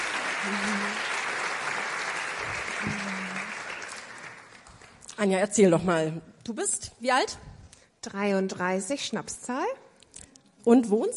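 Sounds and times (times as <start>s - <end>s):
audience applause: 0.0s - 4.9s
speech: 0.4s - 0.8s, 5.2s - 9.8s, 10.6s - 11.1s.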